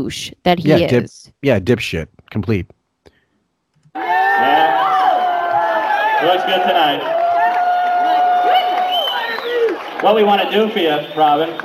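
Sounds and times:
speech: 0:00.0 - 0:02.8, 0:06.2 - 0:07.2, 0:10.0 - 0:11.6
whoops from the crowd: 0:03.9 - 0:09.9
rowdy crowd cheering and shouting: 0:04.0 - 0:11.6
long high whistle: 0:08.1 - 0:09.8.

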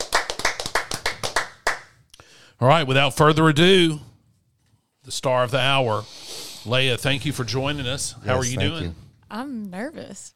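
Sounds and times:
sharp crisp hand claps: 0:00.0 - 0:02.0
speech: 0:02.6 - 0:04.1, 0:05.1 - 0:10.3.

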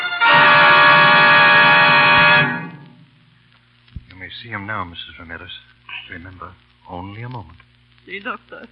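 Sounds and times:
car horn honking: 0:00.2 - 0:02.6
speech: 0:04.8 - 0:08.7.

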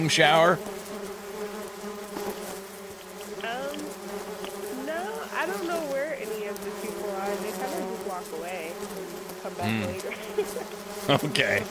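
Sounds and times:
speech: 0:00.0 - 0:00.9, 0:09.4 - 0:11.6
Canadianized honeybees buzzing: 0:00.0 - 0:11.6
laughter: 0:09.5 - 0:11.6.

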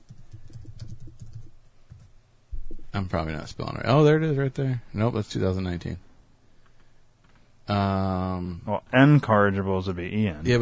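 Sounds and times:
typing on a computer keyboard into a search box: 0:00.0 - 0:03.0
speech: 0:03.0 - 0:06.1, 0:07.7 - 0:10.6.

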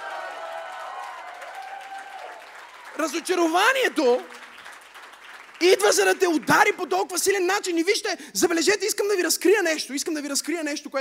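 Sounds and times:
audience cheering: 0:00.0 - 0:04.7
audience applauding: 0:00.0 - 0:07.4
speech: 0:03.0 - 0:04.4, 0:05.6 - 0:10.9.

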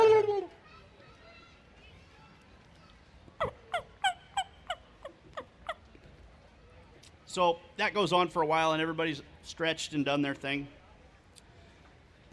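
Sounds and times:
wild turkey gobbler gobbling from its roost in a tree: 0:03.4 - 0:05.8
speech: 0:07.4 - 0:10.8.

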